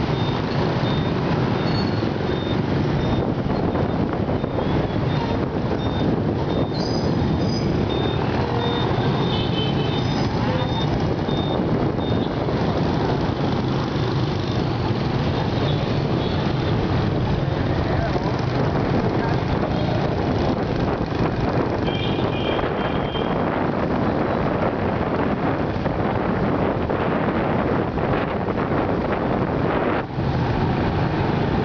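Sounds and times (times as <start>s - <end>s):
motorbike engines and road noise in Saigon traffic: 0.0s - 31.6s
short horn beeps: 0.1s - 12.4s.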